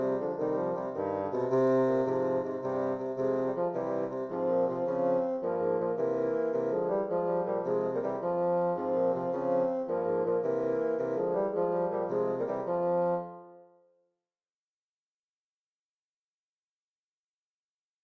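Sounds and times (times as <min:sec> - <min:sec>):
bassoon trio playing a gigue: 0:00.0 - 0:13.3.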